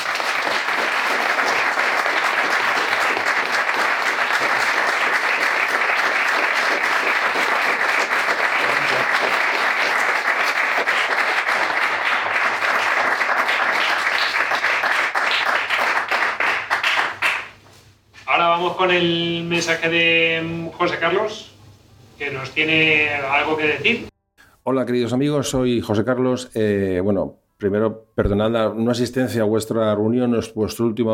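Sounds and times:
audience applause at a gathering: 0.0 - 17.6
speech: 18.8 - 21.5, 22.2 - 24.1, 24.7 - 31.1.

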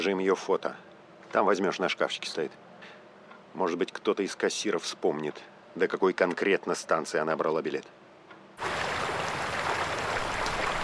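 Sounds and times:
speech: 0.0 - 3.0, 3.6 - 8.0
river water flowing: 8.6 - 10.8.

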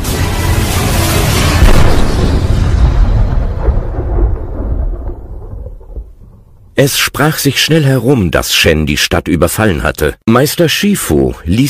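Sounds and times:
huge cannon firing: 0.0 - 6.8
speech: 6.8 - 11.6.

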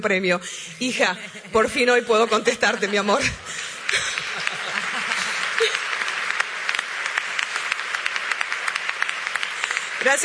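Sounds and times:
speech: 0.0 - 4.1, 10.0 - 10.2
laughter: 0.8 - 6.8
audience applause at an award ceremony: 2.3 - 10.2.

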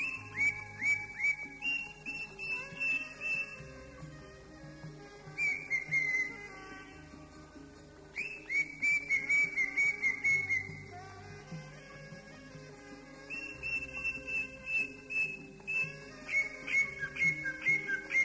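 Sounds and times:
greater green leafbird song: 0.0 - 4.5, 5.3 - 7.2, 8.1 - 11.2, 13.3 - 18.2.

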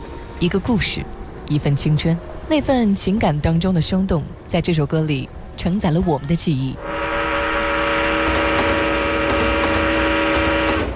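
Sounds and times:
speech: 0.4 - 6.9
train wheels rumbling: 0.4 - 10.9
arriving train horn droning: 6.8 - 10.9.

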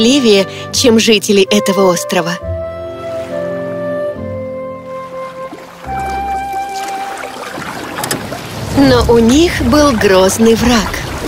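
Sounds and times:
speech: 0.0 - 2.5, 8.8 - 11.1
boat moving across water: 2.4 - 11.2
faint water splashing and wash: 2.8 - 11.2.

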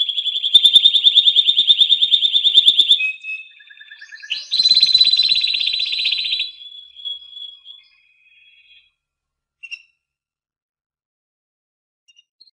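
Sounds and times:
competition first-place winner canary singing trills: 0.0 - 8.9, 9.6 - 10.0.

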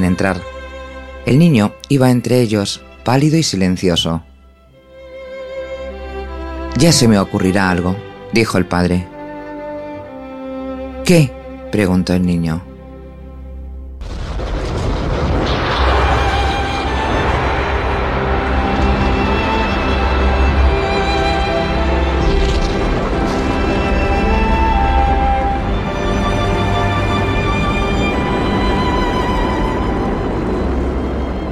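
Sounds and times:
speech: 0.1 - 0.5, 1.2 - 4.3, 6.8 - 9.1, 11.1 - 12.7
rocket lifting off into space sound effect in a Spanish radio drama: 14.0 - 31.5.

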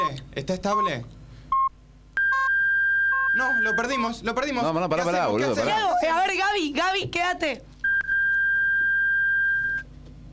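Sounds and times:
low hum: 0.0 - 10.3
speech: 0.4 - 1.2, 3.4 - 7.7
telephone beep: 1.6 - 4.1, 7.9 - 9.8.

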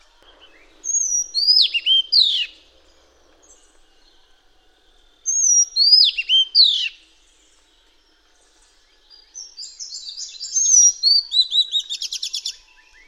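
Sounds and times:
Madagascar magpie-robin singing: 0.2 - 2.6, 5.3 - 7.0, 9.4 - 13.0.

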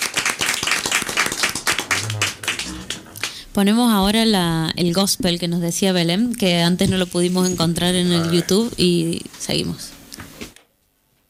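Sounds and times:
group applauding: 0.0 - 3.5
low hum: 1.8 - 5.6
speech: 3.6 - 10.0.

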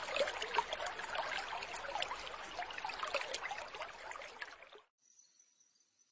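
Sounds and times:
bird high rapid trills: 0.0 - 4.8.

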